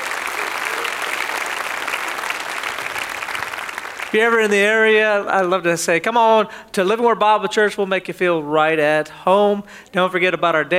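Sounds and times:
audience clapping: 0.0 - 5.0
speech: 4.1 - 10.7.

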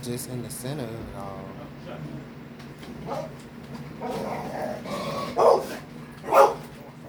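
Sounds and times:
speech: 0.1 - 5.7
female dog barking excitedly at seeing another dog: 3.1 - 3.4, 5.3 - 6.7.

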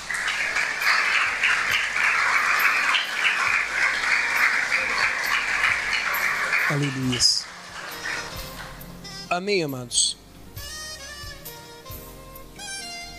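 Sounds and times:
audience applause: 0.0 - 8.8
speech: 6.7 - 7.4, 9.4 - 10.0.

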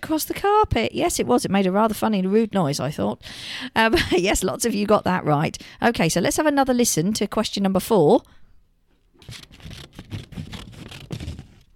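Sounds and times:
speech: 0.1 - 8.4, 9.3 - 9.8
scissors cutting paper: 9.2 - 11.7.

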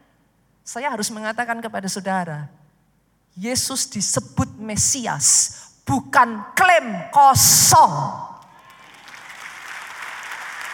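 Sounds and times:
speech: 0.7 - 2.6, 3.4 - 8.3
audience applause: 8.6 - 10.7.

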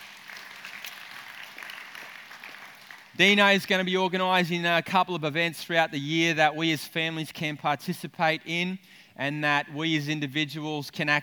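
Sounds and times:
audience clapping: 0.0 - 3.4
speech: 3.2 - 11.2.

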